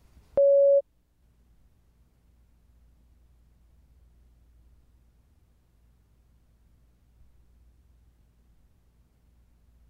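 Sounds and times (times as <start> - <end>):
steady mid-high electronic beep: 0.4 - 0.8.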